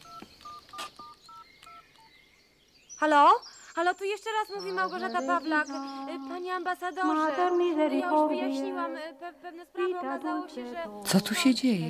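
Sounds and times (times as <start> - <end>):
touch-tone telephone beeps dialing an embassy: 0.0 - 2.2
speech: 3.0 - 11.8.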